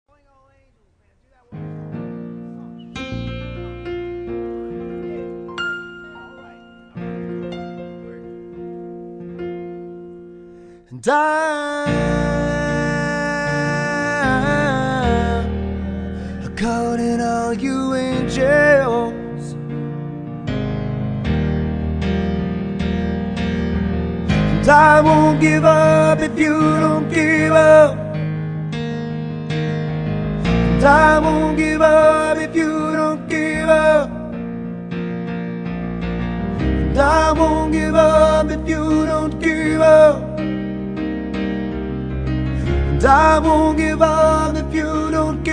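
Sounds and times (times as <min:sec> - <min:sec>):
singing with piano: 0:01.3 - 0:45.5.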